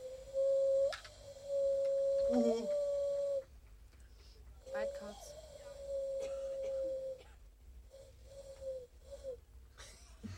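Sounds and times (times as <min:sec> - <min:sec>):
voice imitating a young eagle owl's hoarse call: 0:01.3 - 0:03.4, 0:04.7 - 0:07.3.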